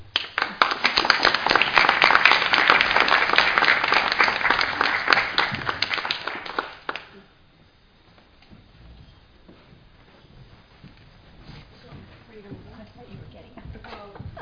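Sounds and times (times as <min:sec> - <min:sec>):
audience applause: 0:00.0 - 0:07.2.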